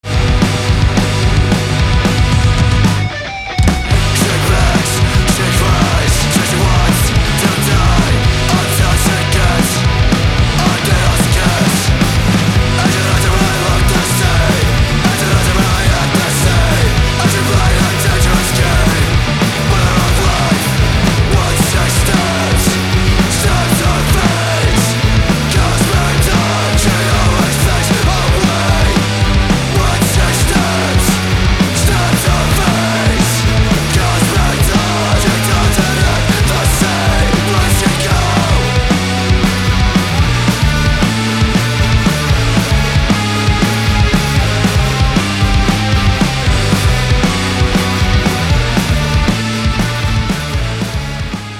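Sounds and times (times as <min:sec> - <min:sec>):
hardcore music: 0:00.0 - 0:51.5.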